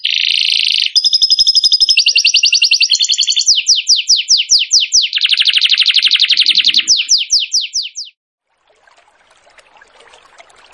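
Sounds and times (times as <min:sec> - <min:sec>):
bird singing: 0:00.0 - 0:08.2.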